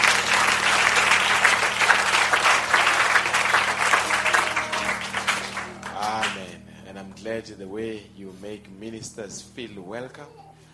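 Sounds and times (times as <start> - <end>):
audience applause: 0.0 - 6.6
speech: 7.4 - 10.5.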